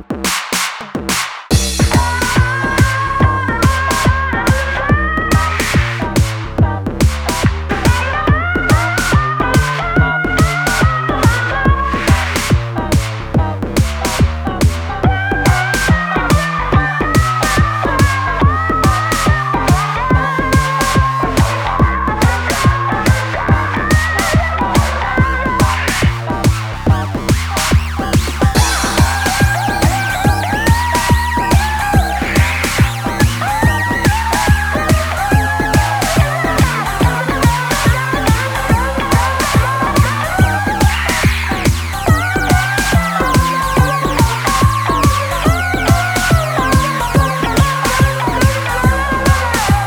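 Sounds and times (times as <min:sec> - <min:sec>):
future bass blues music: 0:00.3 - 0:49.8.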